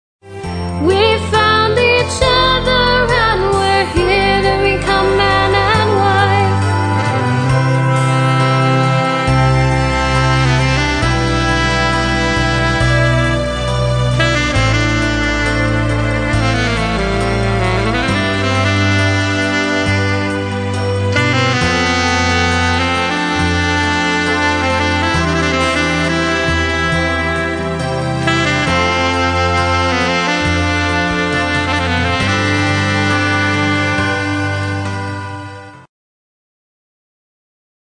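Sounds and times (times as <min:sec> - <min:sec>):
saxophone solo: 0:00.4 - 0:35.9.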